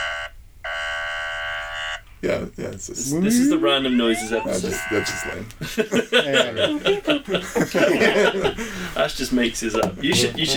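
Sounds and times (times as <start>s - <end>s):
phone ringtone: 0.0s - 2.1s, 4.0s - 5.4s
laughter: 2.2s - 10.5s
speech: 2.2s - 10.5s.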